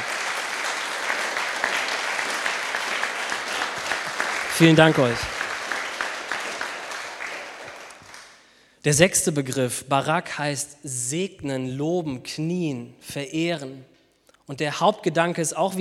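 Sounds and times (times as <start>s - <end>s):
audience applause: 0.0s - 8.4s
speech: 4.6s - 5.3s, 8.8s - 13.9s, 14.5s - 15.7s.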